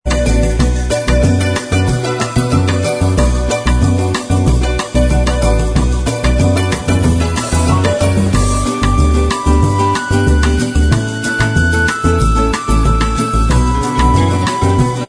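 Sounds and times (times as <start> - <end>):
bossa nova style instrumental backing track: 0.1 - 15.0.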